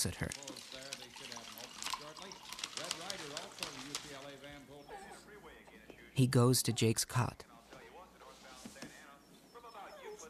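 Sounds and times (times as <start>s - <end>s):
speech: 0.0s - 0.8s, 2.2s - 7.5s
coffee being poured into a cup: 0.0s - 4.6s.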